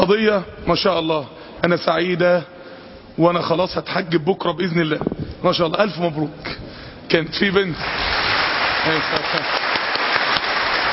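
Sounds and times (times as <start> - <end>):
speech: 0.0 - 2.6, 3.2 - 9.6
audience applauding in a lecture hall: 7.8 - 10.9.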